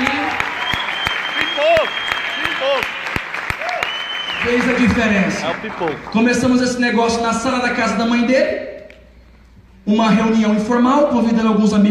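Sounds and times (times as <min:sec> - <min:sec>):
voices cheering: 0:00.0 - 0:05.0
audience applause: 0:00.0 - 0:06.4
speech: 0:04.5 - 0:08.7, 0:09.9 - 0:11.8.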